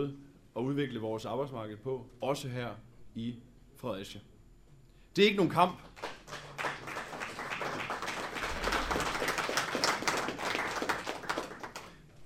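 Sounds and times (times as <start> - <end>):
speech: 0.0 - 4.3, 5.2 - 6.1
audience clapping: 6.0 - 12.2.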